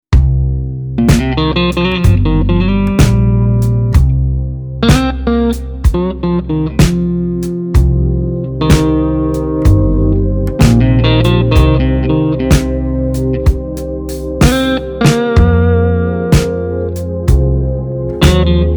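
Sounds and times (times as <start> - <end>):
Stratocaster electric guitar blues: 1.0 - 4.2, 4.8 - 18.7.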